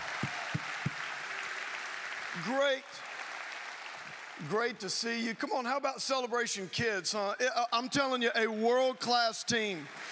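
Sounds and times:
audience applause: 0.0 - 5.6
speech: 2.4 - 3.1, 4.4 - 10.0.

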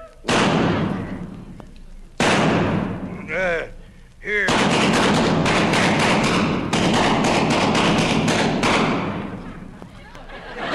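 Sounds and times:
gunshot blasts shooting a fly off a wall, radio comedy sound effect: 0.3 - 1.4, 2.2 - 3.1, 4.5 - 9.4
laughter: 9.3 - 10.7.

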